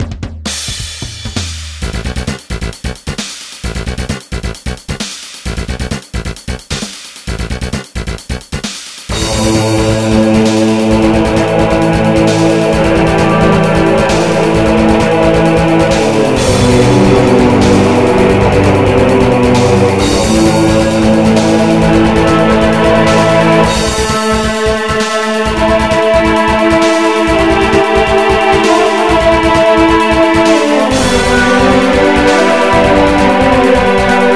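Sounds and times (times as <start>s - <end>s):
bass: 0.0s - 34.3s.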